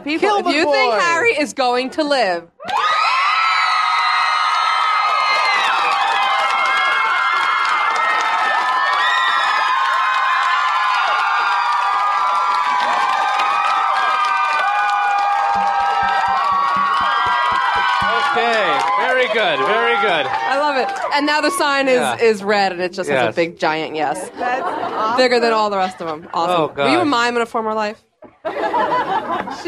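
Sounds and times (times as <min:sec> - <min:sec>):
laughter: 0:00.0 - 0:01.2, 0:21.4 - 0:22.5, 0:24.1 - 0:27.2, 0:28.2 - 0:29.6
speech: 0:00.0 - 0:02.9, 0:19.3 - 0:29.6
audience cheering and whooping: 0:02.6 - 0:22.2.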